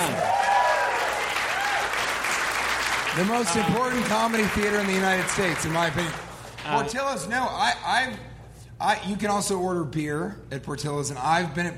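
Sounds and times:
crowd whooping and cheering: 0.0s - 4.4s
crowd applause: 0.0s - 6.3s
speech: 3.2s - 11.7s.

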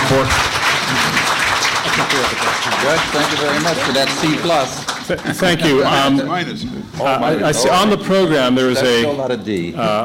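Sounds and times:
audience applause: 0.0s - 5.8s
speech: 0.1s - 1.1s, 2.0s - 10.0s.

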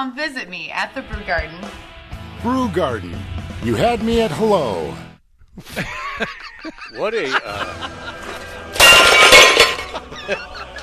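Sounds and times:
speech: 0.0s - 6.3s, 6.9s - 8.2s, 10.3s - 10.5s
laughter: 5.6s - 8.8s, 9.6s - 10.8s
glass smashing: 8.6s - 10.2s.

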